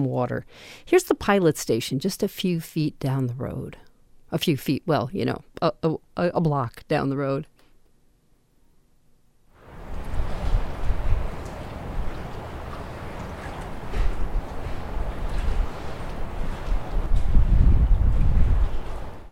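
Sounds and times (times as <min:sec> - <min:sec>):
speech: 0:00.0 - 0:07.5
steady rush of wind-like noise: 0:09.6 - 0:19.2
water slapping against dock pilings: 0:09.6 - 0:19.2.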